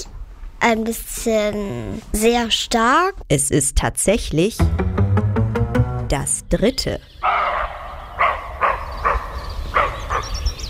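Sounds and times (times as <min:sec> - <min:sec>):
speech: 0:00.0 - 0:05.0, 0:06.1 - 0:07.4
roe deer barking: 0:07.2 - 0:10.3.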